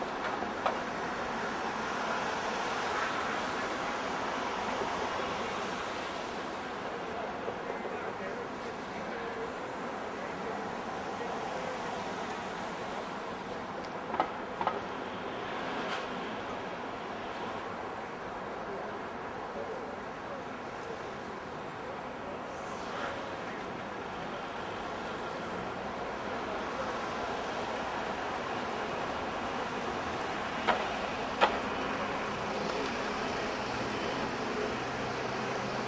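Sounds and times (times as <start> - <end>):
cars and other vehicles driving by on road at 25 mph at town intersection: 0.0 - 35.8.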